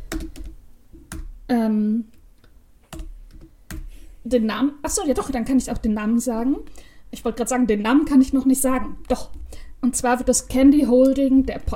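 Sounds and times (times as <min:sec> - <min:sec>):
typing a note on a computer keyboard: 0:00.0 - 0:01.4, 0:02.9 - 0:03.9
speech: 0:01.5 - 0:02.2, 0:04.2 - 0:11.7.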